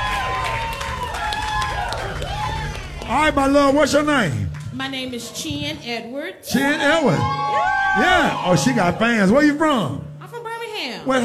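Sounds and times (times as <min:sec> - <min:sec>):
audience applause and cheering at a live show: 0:00.0 - 0:05.3, 0:06.6 - 0:09.6
speech: 0:03.1 - 0:10.0, 0:10.8 - 0:11.2.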